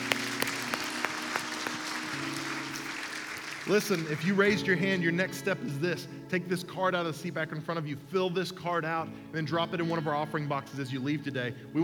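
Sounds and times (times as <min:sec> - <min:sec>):
audience clapping: 0:00.0 - 0:04.6
sustained keyboard chords: 0:00.0 - 0:11.8
speech: 0:03.7 - 0:11.8.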